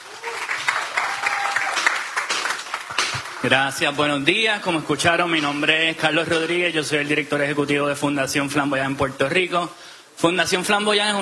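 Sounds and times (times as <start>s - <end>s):
audience applause: 0.0s - 5.8s
speech: 3.4s - 11.2s.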